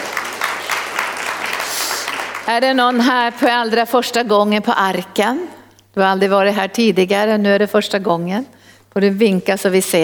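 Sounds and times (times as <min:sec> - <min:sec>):
audience applause: 0:00.0 - 0:02.5
speech: 0:02.4 - 0:10.0.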